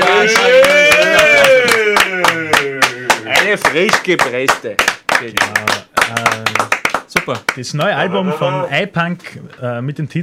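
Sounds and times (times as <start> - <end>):
steady handclaps: 0.0 - 8.0
speech: 0.2 - 0.8, 3.5 - 10.2.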